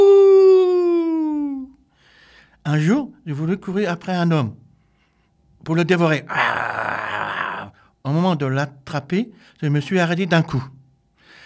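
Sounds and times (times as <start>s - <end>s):
person imitating a werewolf howl: 0.0s - 1.6s, 6.3s - 7.7s
speech: 2.6s - 4.6s, 5.6s - 6.7s, 8.0s - 10.8s.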